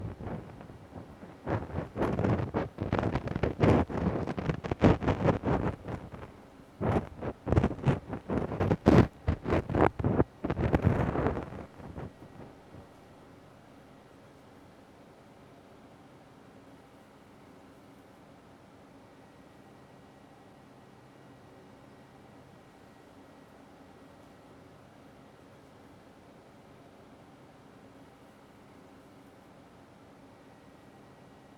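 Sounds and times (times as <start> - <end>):
ear cleaning ASMR on the right side: 0.0 - 12.8.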